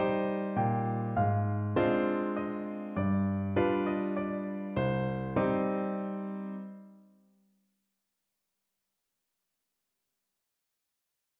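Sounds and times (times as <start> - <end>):
piano: 0.0 - 7.3.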